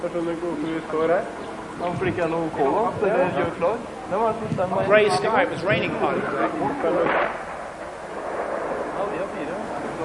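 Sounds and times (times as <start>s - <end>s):
speech: 0.0s - 7.5s
artillery battery firing inside Lebanon: 5.7s - 9.5s.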